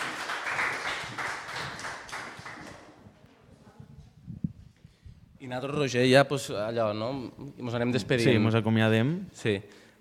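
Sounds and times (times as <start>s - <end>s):
audience applause: 0.0s - 2.9s
scattered claps and murmurs: 0.0s - 3.5s
speech: 5.5s - 9.9s.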